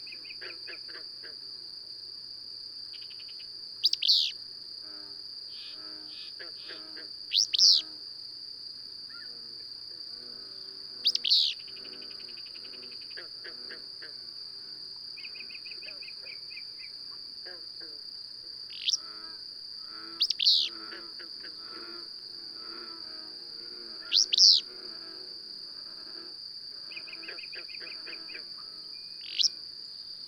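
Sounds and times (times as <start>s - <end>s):
insect drone: 0.0s - 30.2s
bird chirps: 3.8s - 4.3s, 7.4s - 7.8s, 29.2s - 29.5s.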